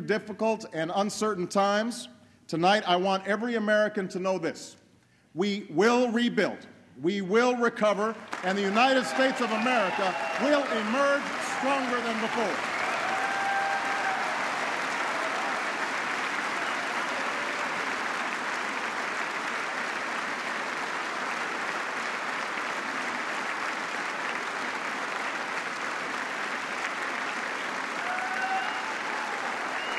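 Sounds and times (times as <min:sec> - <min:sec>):
speech: 0:00.1 - 0:12.7
applause from members of Congress: 0:08.1 - 0:29.9.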